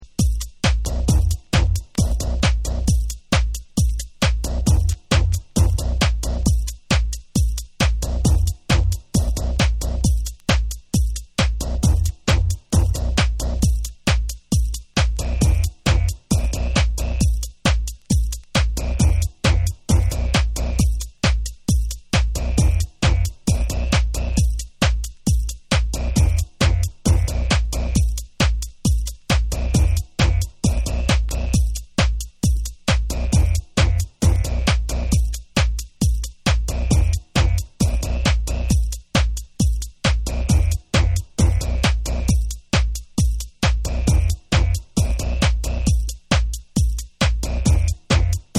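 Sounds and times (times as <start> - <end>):
instrumental music: 0.0 - 48.5.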